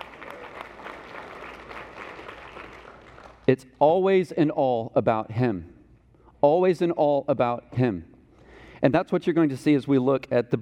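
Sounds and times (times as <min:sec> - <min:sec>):
audience clapping: 0:00.0 - 0:03.6
speech: 0:03.5 - 0:05.7, 0:06.4 - 0:08.1, 0:08.8 - 0:10.5.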